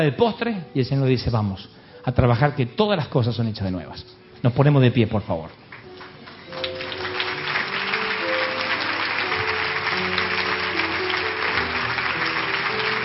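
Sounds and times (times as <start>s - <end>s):
speech: 0.0s - 5.6s
audience applauding: 5.7s - 13.0s.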